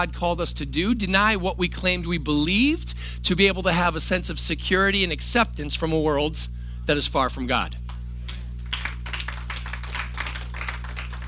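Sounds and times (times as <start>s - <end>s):
speech: 0.0s - 7.8s
low electrical hum: 0.0s - 11.2s
audience clapping: 7.9s - 11.2s.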